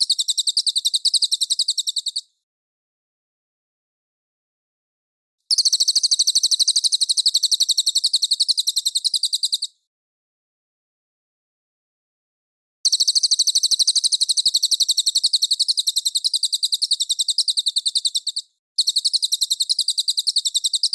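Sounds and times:
mangrove whistler chattering song: 0.0 - 2.3, 5.5 - 9.7, 12.9 - 20.9.

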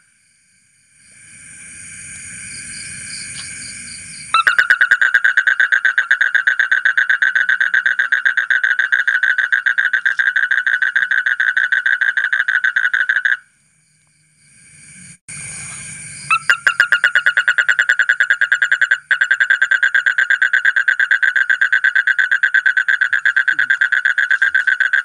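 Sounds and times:
Asian common toad trilling: 3.1 - 13.5, 15.7 - 25.0
hiss: 15.0 - 16.0.

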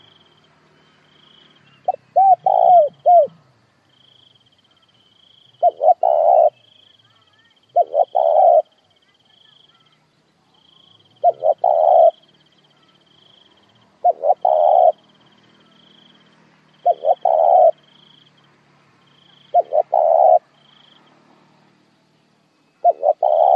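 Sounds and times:
spotted dove cooing: 1.8 - 3.4, 5.6 - 6.6, 7.7 - 8.8, 11.0 - 13.0, 13.9 - 16.0, 16.8 - 17.9, 19.3 - 20.5, 22.8 - 23.5.

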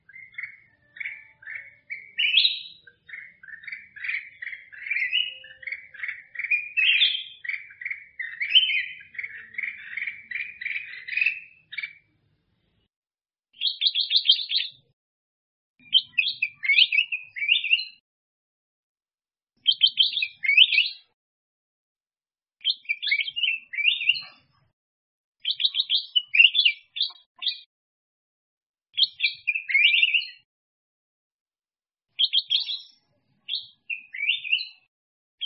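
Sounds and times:
black-crested bulbul singing: 0.0 - 12.1, 13.6 - 14.9, 15.8 - 18.0, 19.6 - 21.2, 22.6 - 24.6, 25.4 - 27.7, 29.0 - 30.5, 32.2 - 35.4.

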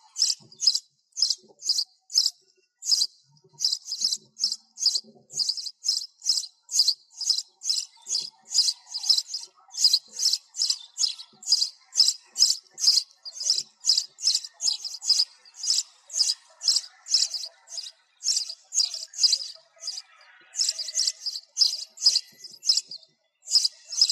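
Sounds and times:
sparrow chirping: 0.0 - 24.1.

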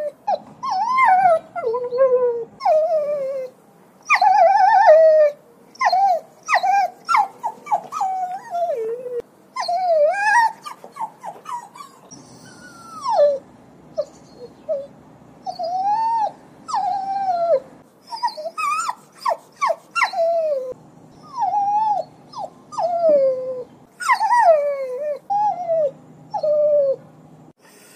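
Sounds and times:
dog whining and yelping: 0.0 - 27.0.

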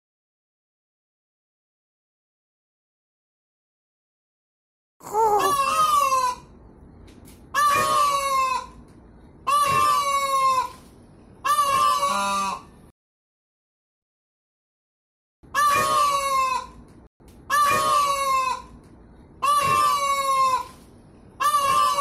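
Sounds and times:
peafowl braying calls: 5.1 - 6.5, 7.5 - 8.8, 9.4 - 12.8, 15.5 - 16.8, 17.5 - 18.8, 19.4 - 20.8, 21.4 - 21.9.

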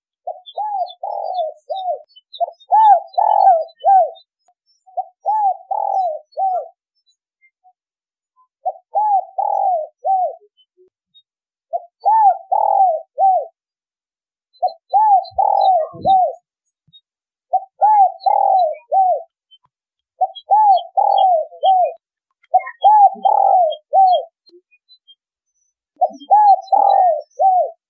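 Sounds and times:
spotted dove cooing: 0.2 - 4.3, 4.9 - 6.8, 8.6 - 10.5, 11.7 - 13.6, 14.6 - 16.4, 17.5 - 19.3, 20.2 - 24.4, 26.0 - 27.8.

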